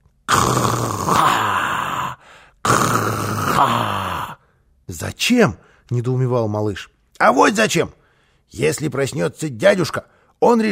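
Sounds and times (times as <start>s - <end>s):
voice imitating loud snoring: 0.3s - 4.4s
speech: 4.9s - 10.7s.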